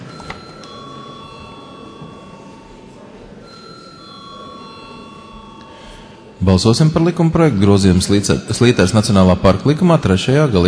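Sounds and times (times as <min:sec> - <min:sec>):
parliamentary chamber electric bell ringing: 0:00.0 - 0:06.9
low murmur: 0:00.0 - 0:10.6
speech: 0:06.4 - 0:10.6.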